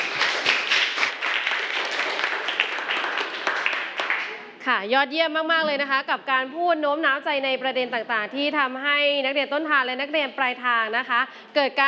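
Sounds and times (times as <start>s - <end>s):
crowd applauding: 0.0s - 4.6s
speech: 4.7s - 11.8s.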